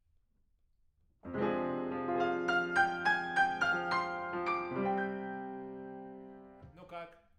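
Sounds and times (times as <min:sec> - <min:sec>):
piano: 0:01.2 - 0:06.8.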